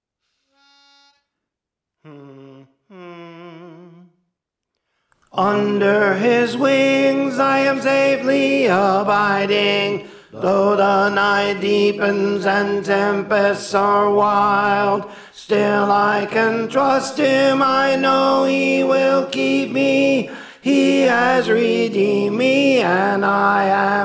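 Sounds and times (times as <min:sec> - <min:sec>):
tenor singing: 0:05.3 - 0:24.0.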